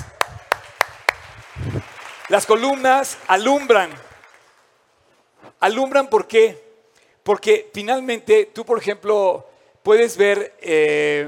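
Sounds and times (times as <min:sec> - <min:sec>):
audience applause: 0:00.0 - 0:04.7
speech: 0:02.3 - 0:04.1, 0:05.6 - 0:06.6, 0:07.2 - 0:11.2.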